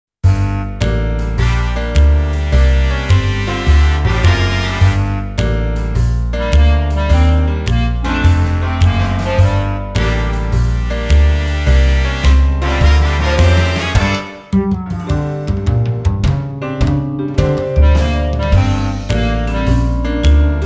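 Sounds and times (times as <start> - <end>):
blues music: 0.2 - 20.6.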